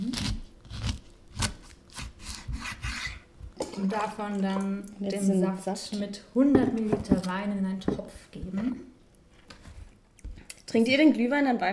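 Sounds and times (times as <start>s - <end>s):
thin peel being pared from washed, dried oranges and lemons: 0.0s - 3.3s
speech: 3.8s - 8.9s, 10.7s - 11.7s.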